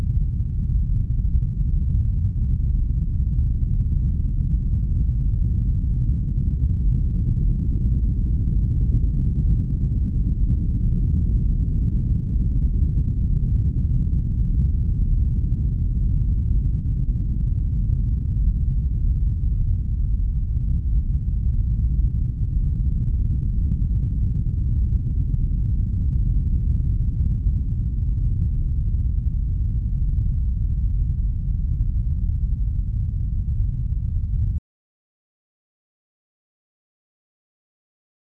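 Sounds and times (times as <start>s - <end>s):
low end rumble: 0.0s - 34.6s.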